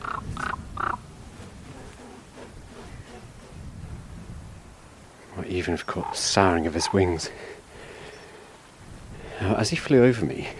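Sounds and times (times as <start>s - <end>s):
raven calling: 0.0s - 3.3s, 5.8s - 8.5s
speech: 5.5s - 7.6s, 9.6s - 10.5s.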